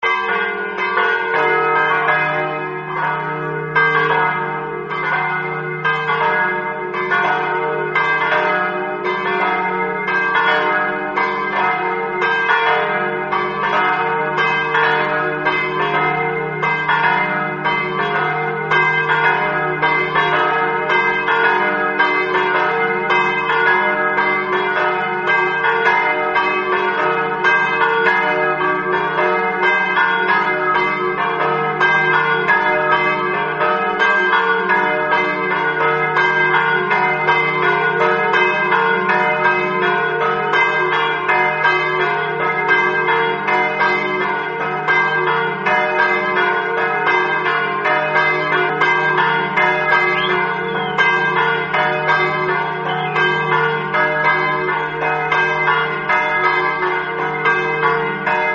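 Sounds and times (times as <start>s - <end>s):
bells ringing: 0.0s - 58.5s.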